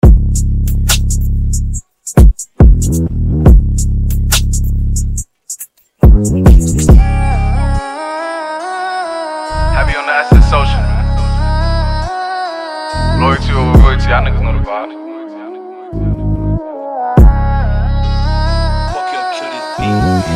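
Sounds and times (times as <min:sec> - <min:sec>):
extended trap beat: 0:00.0 - 0:07.9, 0:09.6 - 0:12.1, 0:13.0 - 0:14.7, 0:17.2 - 0:20.3.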